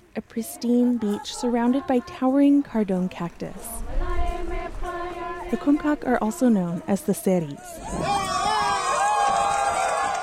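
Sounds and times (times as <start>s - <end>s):
speech: 0.2s - 4.0s, 5.5s - 8.2s
crowd cheering at a reunion: 7.7s - 10.2s.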